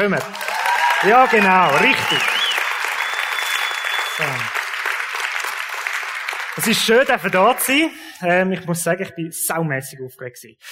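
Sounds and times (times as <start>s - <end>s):
speech: 0.0s - 2.4s, 4.2s - 4.6s, 6.6s - 10.7s
audience applause: 0.0s - 7.9s.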